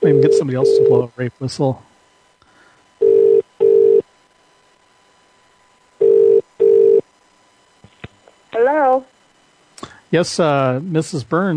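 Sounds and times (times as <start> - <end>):
telephone ringing tone: 0.0 - 1.0, 3.0 - 4.0, 6.0 - 7.0
speech: 0.0 - 1.9, 8.6 - 9.1, 10.1 - 11.5.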